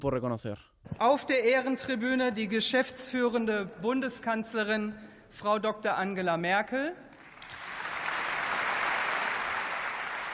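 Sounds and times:
speech: 0:00.0 - 0:07.1
parliament members applauding: 0:07.2 - 0:10.3.

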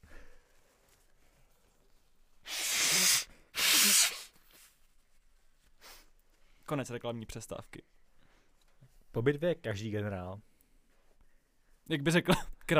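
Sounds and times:
nose blowing: 0:02.4 - 0:04.6
faint sniff: 0:02.4 - 0:04.8, 0:05.8 - 0:06.2
speech: 0:06.7 - 0:08.0, 0:09.2 - 0:10.5, 0:11.9 - 0:12.7.

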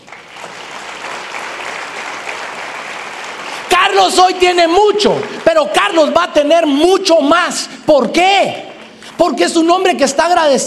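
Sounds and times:
audience applause: 0:00.0 - 0:07.3
speech: 0:03.9 - 0:10.6.

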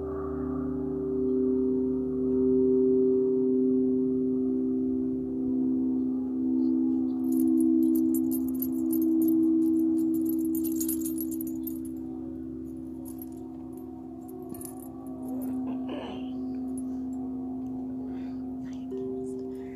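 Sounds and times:
Tibetan singing bowls humming: 0:00.0 - 0:19.7
bright dense metallic jangling: 0:07.2 - 0:12.0, 0:13.0 - 0:17.0.

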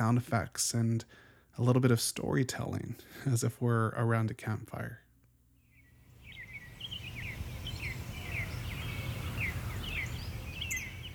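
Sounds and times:
speech: 0:00.0 - 0:05.0
woodland bird chirps: 0:05.6 - 0:11.1.

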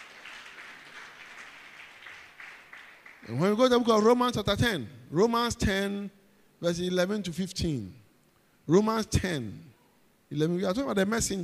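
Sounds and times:
audience clapping: 0:00.0 - 0:03.5
speech: 0:03.2 - 0:08.0, 0:08.7 - 0:09.7, 0:10.3 - 0:11.4.

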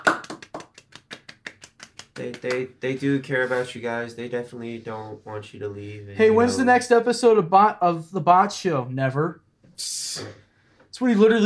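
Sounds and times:
golf clap, quiet slow clapping: 0:00.0 - 0:02.7
speech: 0:02.2 - 0:10.4, 0:11.0 - 0:11.4.

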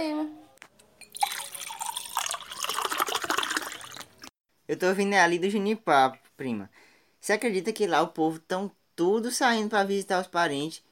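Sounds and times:
person drinking water: 0:01.2 - 0:04.3
speech: 0:04.7 - 0:10.8.

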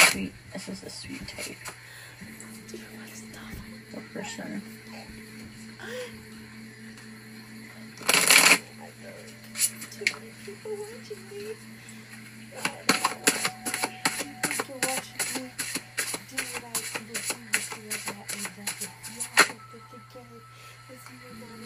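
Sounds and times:
speech: 0:00.2 - 0:03.0, 0:04.2 - 0:06.3, 0:08.9 - 0:13.4
deck of Romance Angels oracle cards shuffled by hand: 0:12.6 - 0:19.6.

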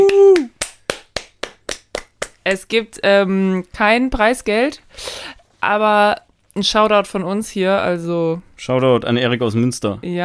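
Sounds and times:
applause: 0:00.0 - 0:02.4
speech: 0:02.5 - 0:10.2.

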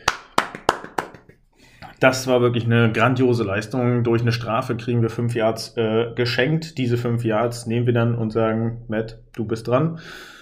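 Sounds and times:
applause, hand clapping: 0:00.0 - 0:01.5
speech: 0:02.0 - 0:10.3.

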